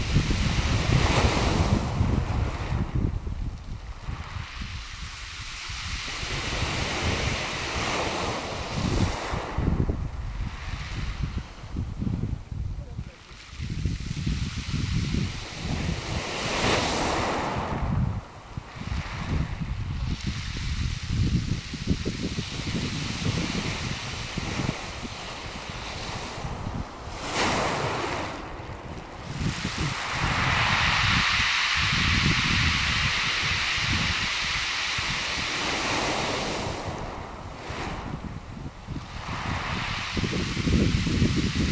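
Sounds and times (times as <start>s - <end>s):
waves at Lyme Regis: 0.0s - 41.6s.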